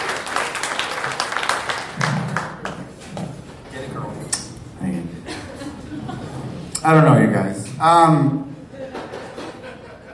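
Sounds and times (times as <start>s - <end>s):
audience applause: 0.0s - 2.9s
laughter: 5.2s - 6.7s, 8.6s - 10.1s
speech: 6.8s - 8.5s.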